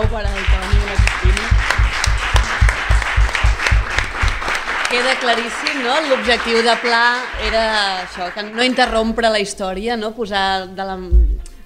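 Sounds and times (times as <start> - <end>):
speech: 0.0 - 0.7, 4.9 - 11.3
rhythmic audience clapping: 0.0 - 9.6.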